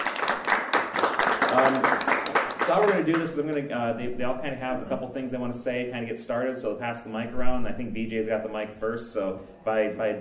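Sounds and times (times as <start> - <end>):
audience applause: 0.0 - 3.3
speech: 1.5 - 2.1, 2.7 - 10.1.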